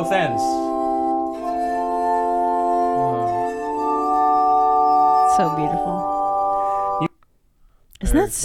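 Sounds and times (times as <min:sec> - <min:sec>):
speech: 0:00.0 - 0:00.6, 0:05.4 - 0:06.1, 0:08.1 - 0:08.4
spinning water-wetted glass instrument ringing: 0:00.0 - 0:07.1.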